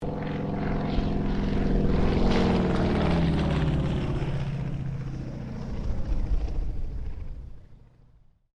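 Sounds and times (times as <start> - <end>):
CAC Wirraway aircraft passing: 0.0 - 8.3.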